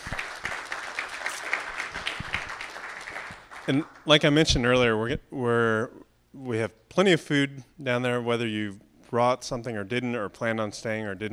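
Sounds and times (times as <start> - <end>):
audience applause: 0.0 - 4.1
speech: 3.7 - 11.3.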